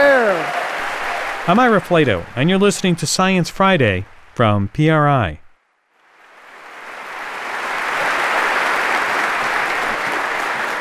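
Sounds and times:
audience applause: 0:00.0 - 0:04.6, 0:06.2 - 0:10.7
speech: 0:01.5 - 0:05.4.

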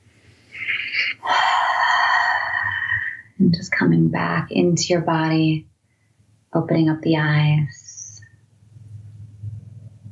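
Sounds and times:
long exhale of a held breath during a guided breathing exercise: 0:00.5 - 0:03.3
speech: 0:03.4 - 0:05.7, 0:06.5 - 0:07.8.

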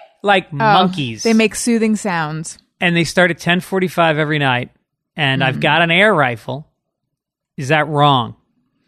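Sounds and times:
speech: 0:00.2 - 0:06.7, 0:07.6 - 0:08.4
voice imitating mockingbird calls: 0:05.4 - 0:05.7.

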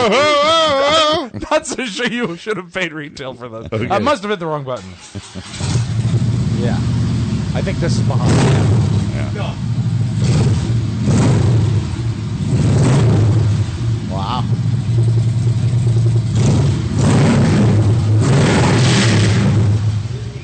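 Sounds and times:
speech: 0:00.0 - 0:00.5, 0:01.6 - 0:05.8, 0:06.6 - 0:07.0, 0:07.6 - 0:10.5, 0:14.2 - 0:15.2
person exclaiming: 0:00.0 - 0:01.4, 0:14.1 - 0:14.5
laughter: 0:00.0 - 0:05.7
motorcycle engine revving with loud exhaust: 0:05.0 - 0:20.4.

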